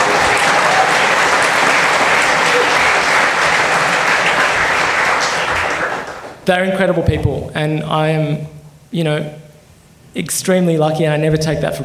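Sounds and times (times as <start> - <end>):
crowd applauding: 0.0 - 6.4
speech: 6.4 - 9.4, 10.1 - 11.8.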